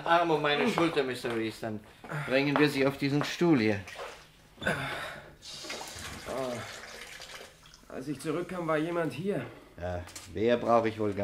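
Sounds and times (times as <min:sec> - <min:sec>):
speech: 0:00.1 - 0:05.6, 0:07.9 - 0:11.2
water running from a tap: 0:05.4 - 0:08.5.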